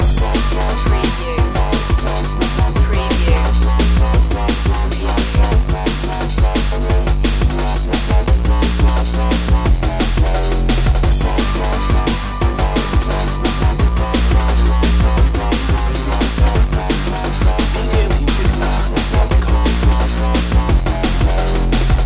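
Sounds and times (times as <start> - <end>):
dreamy drum and bass loop: 0.0 - 22.0.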